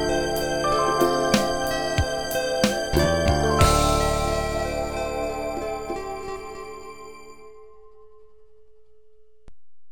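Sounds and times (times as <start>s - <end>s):
R&B music: 0.0s - 7.4s.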